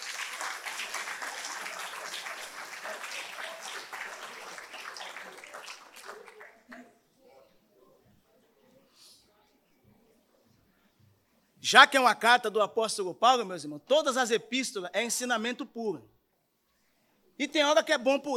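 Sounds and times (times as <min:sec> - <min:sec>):
audience applause: 0:00.0 - 0:06.7
speech: 0:11.7 - 0:16.1, 0:17.4 - 0:18.3.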